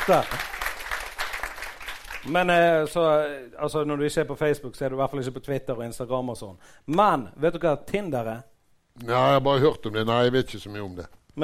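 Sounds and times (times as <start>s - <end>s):
small group clapping: 0.0s - 2.7s
speech: 0.1s - 0.5s, 2.2s - 11.4s.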